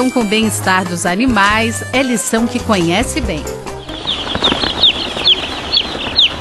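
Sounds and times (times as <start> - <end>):
speech: 0.0 - 3.8
chickens clucking softly in an aviary: 3.1 - 6.3
newly hatched chick peeping: 3.7 - 6.3.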